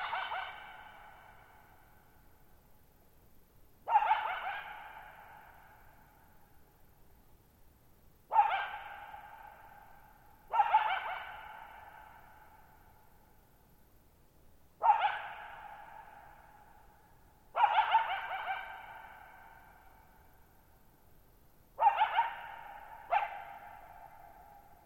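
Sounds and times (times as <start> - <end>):
coyote barking and howling: 0.0 - 1.9, 3.8 - 6.1, 8.3 - 13.0, 14.8 - 16.8, 17.5 - 20.4, 21.8 - 24.8.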